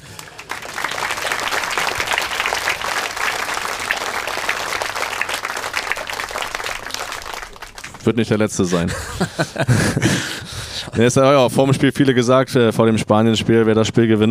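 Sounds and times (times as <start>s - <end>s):
applause: 0.0s - 8.4s
speech: 8.1s - 14.3s
laughter: 8.5s - 11.0s.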